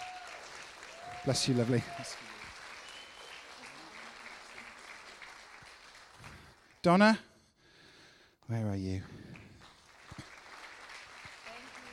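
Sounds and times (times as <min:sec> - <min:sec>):
audience applause in church: 0:00.0 - 0:06.8, 0:09.3 - 0:11.9
speech: 0:01.2 - 0:02.3, 0:06.8 - 0:07.3, 0:08.5 - 0:09.2.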